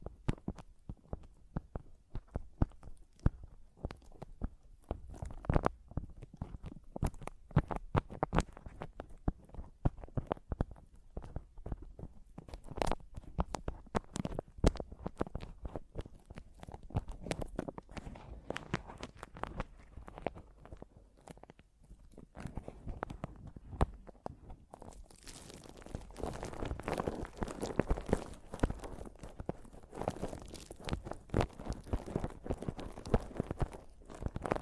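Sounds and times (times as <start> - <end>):
microphone tapping and scratching: 0.0 - 34.5.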